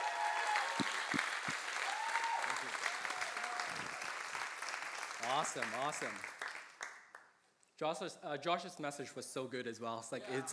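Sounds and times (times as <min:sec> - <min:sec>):
audience applauding to welcome a speaker: 0:00.0 - 0:07.3
speech: 0:05.4 - 0:06.4, 0:07.8 - 0:10.5.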